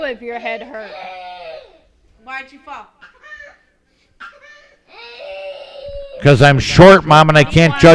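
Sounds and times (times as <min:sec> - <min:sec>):
speech: 0:00.0 - 0:01.2, 0:02.2 - 0:03.1, 0:06.2 - 0:07.9
child screaming and crying: 0:00.8 - 0:01.9, 0:03.1 - 0:06.3.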